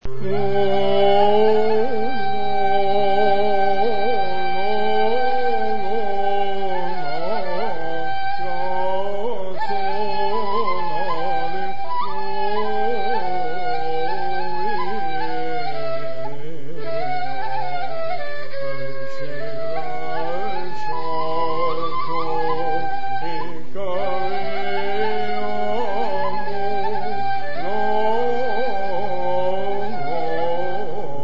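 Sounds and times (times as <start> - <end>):
ney taksim improvisation: 0.0 - 31.2.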